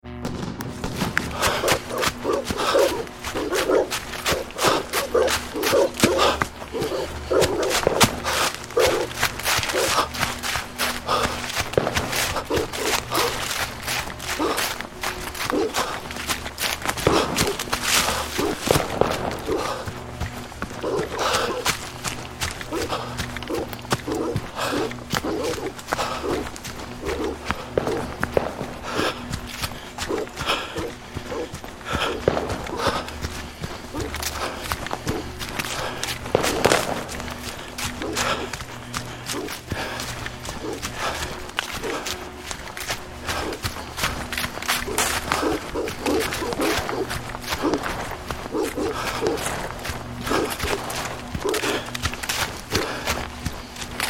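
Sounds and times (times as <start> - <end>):
man running through woodland: 0.0 - 54.0
out of breath man running through woodland: 0.8 - 54.0
pursuers' dogs: 1.4 - 16.4, 17.0 - 20.0, 20.7 - 21.8, 22.6 - 53.1.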